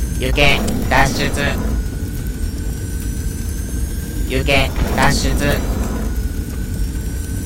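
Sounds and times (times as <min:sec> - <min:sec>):
speech: 0:00.2 - 0:01.7, 0:04.3 - 0:05.8
jet thrust blasting from the underside of a modified bottle cap: 0:00.2 - 0:02.9, 0:04.1 - 0:07.4.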